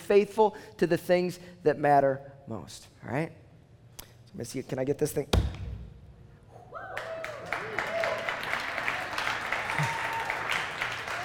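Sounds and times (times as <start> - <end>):
speech: 0.1 - 3.4, 4.4 - 5.6
church service audience cheering and clapping: 6.8 - 11.2.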